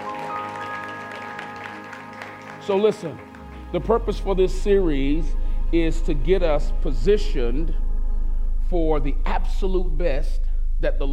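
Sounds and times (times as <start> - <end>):
audience clapping hands: 0.0 - 4.2
sustained musical tones: 0.0 - 11.1
speech: 2.7 - 7.8, 8.7 - 11.1.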